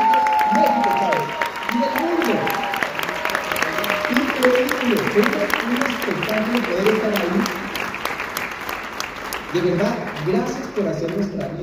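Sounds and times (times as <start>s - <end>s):
crowd clapping: 0.0s - 11.6s
speech: 9.5s - 11.6s.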